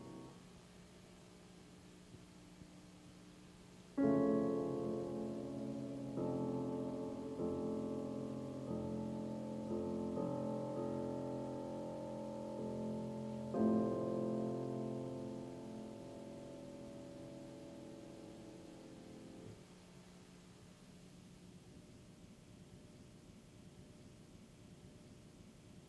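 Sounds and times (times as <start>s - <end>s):
piano: 0.0s - 0.5s, 3.9s - 19.8s.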